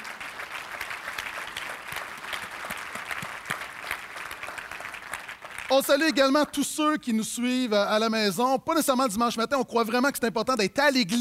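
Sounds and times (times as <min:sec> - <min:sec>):
audience applause: 0:00.0 - 0:06.6
speech: 0:05.7 - 0:11.2.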